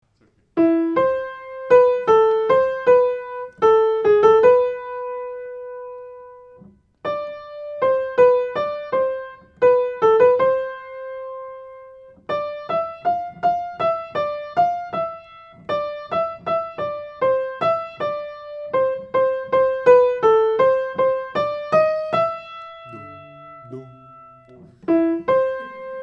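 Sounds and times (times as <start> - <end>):
piano: 0.0 - 26.0.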